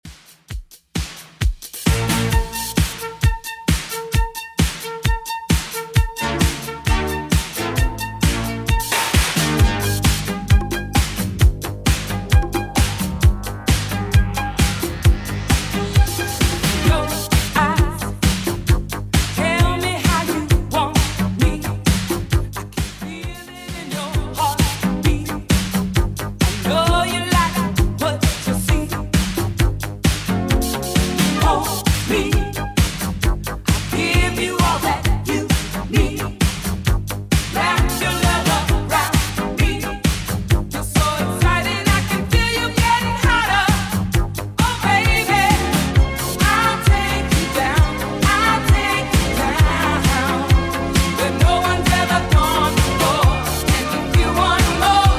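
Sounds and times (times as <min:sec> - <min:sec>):
80s style beat at 132 bpm: 0:00.0 - 0:55.1.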